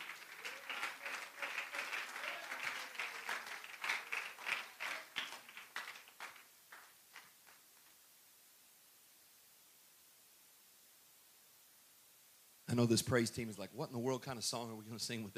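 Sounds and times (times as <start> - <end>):
audience clapping: 0.0 - 8.0
speech: 12.7 - 15.3.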